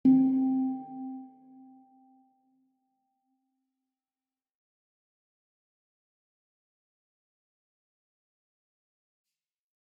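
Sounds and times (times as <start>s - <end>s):
handpan playing: 0.0s - 2.0s.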